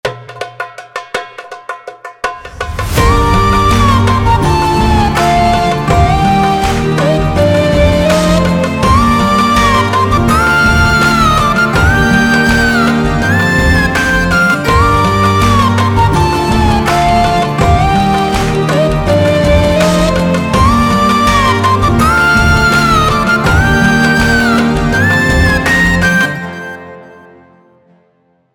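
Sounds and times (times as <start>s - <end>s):
epic music: 2.4s - 27.9s.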